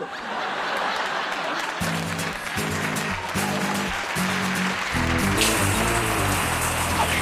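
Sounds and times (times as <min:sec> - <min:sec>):
laughter: 0:00.0 - 0:07.1
shower running: 0:05.3 - 0:07.1.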